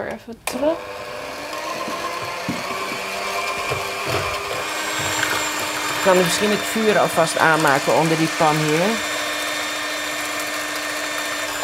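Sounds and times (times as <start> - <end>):
speech: 0.1 - 1.1, 6.0 - 9.1
electric mixer mixing batter: 0.5 - 11.6
soft knocks and bumps: 1.8 - 5.5.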